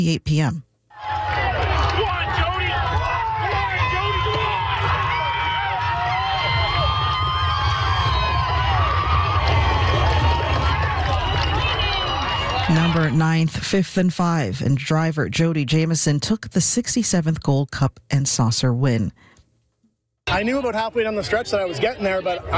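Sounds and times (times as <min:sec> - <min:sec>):
speech: 0:00.0 - 0:00.7, 0:12.7 - 0:19.3, 0:20.3 - 0:22.5
crowd cheering at a horse race: 0:00.9 - 0:13.5, 0:20.3 - 0:22.5.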